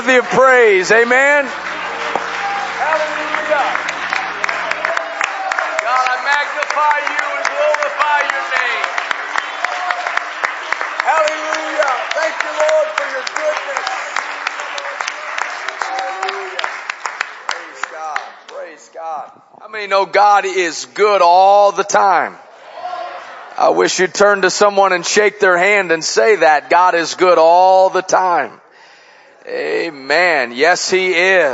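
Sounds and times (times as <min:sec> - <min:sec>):
audience clapping: 0:00.0 - 0:18.8
speech: 0:00.1 - 0:01.8, 0:02.9 - 0:03.9, 0:06.8 - 0:09.0, 0:11.1 - 0:14.0, 0:19.0 - 0:22.4, 0:23.6 - 0:28.6, 0:29.5 - 0:31.5.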